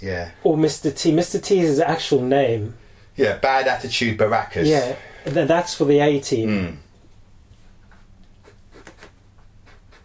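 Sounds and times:
speech: 0.0s - 6.8s
constant hiss: 0.0s - 10.0s
pen or marker scratching writing capital letters by hand: 8.4s - 10.0s.

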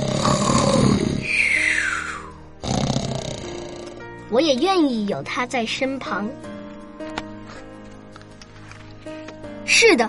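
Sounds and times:
loud snoring: 0.0s - 4.2s
speech: 4.3s - 6.5s, 9.7s - 10.0s.

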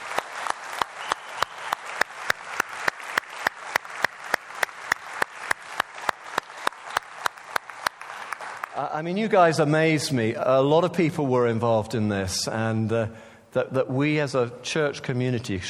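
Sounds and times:
audience applause for thanked volunteers: 0.0s - 9.0s
speech: 8.8s - 15.6s.

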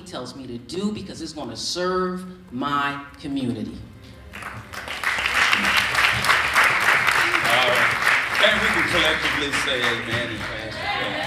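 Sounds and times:
speech: 0.1s - 4.7s, 8.4s - 11.2s
audience applause: 4.3s - 11.2s.

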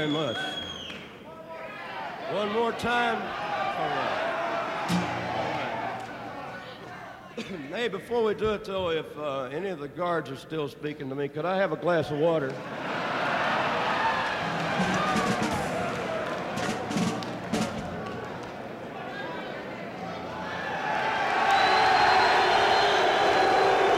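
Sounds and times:
speech: 0.0s - 0.6s, 2.3s - 4.3s, 7.4s - 12.9s
prison inmates cheering and applauding: 0.0s - 7.2s, 12.6s - 23.9s.

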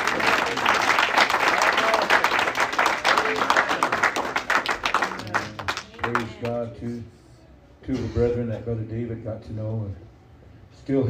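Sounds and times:
audience clapping: 0.0s - 6.6s
speech: 6.4s - 7.2s, 7.9s - 10.0s, 10.8s - 11.0s.

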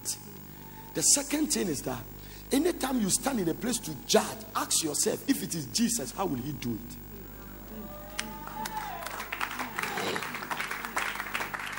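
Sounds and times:
speech: 1.0s - 7.1s
audience clapping: 8.1s - 11.7s.

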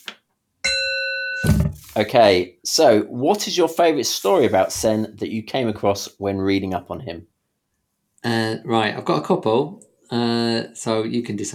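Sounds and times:
bell ringing: 0.6s - 1.7s
speech: 1.5s - 7.3s, 8.2s - 11.5s.

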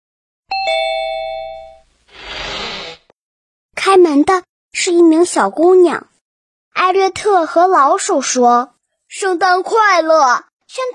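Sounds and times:
doorbell ringing: 0.5s - 1.9s
speech: 3.9s - 6.1s, 6.8s - 10.9s.

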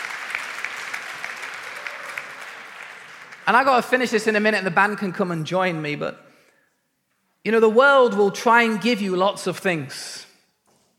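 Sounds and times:
crowd applauding: 0.0s - 4.0s
speech: 3.5s - 6.2s, 7.4s - 10.3s.

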